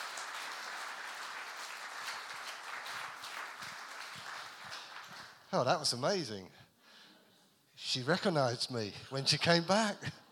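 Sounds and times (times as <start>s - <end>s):
audience applause: 0.0s - 5.5s
speech: 5.5s - 6.6s, 7.9s - 10.2s.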